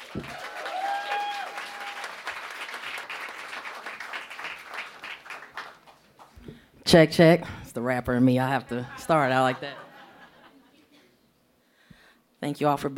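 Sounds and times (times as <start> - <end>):
audience applause: 0.0 - 6.3
speech: 6.9 - 9.9, 12.4 - 12.9
laughter: 8.8 - 10.9.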